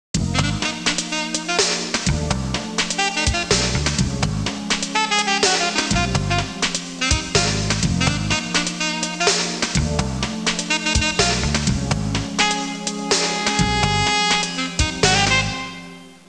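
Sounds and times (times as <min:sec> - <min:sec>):
urban music: 0:00.2 - 0:16.2.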